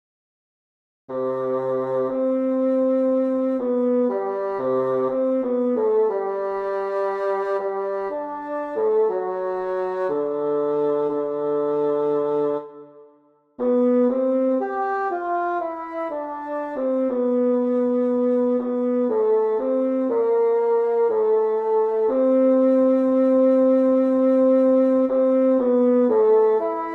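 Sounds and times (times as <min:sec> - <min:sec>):
bass: 0:01.1 - 0:12.7, 0:13.6 - 0:26.9.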